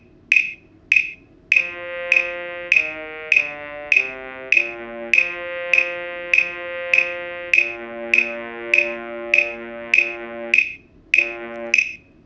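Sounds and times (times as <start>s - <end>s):
bass trombone: 1.6s - 10.6s, 11.2s - 11.9s.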